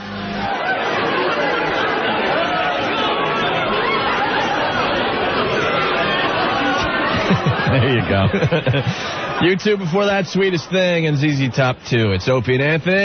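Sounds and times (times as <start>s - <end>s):
party crowd chatter sound effect: 0.0s - 13.0s
speech: 7.7s - 13.0s.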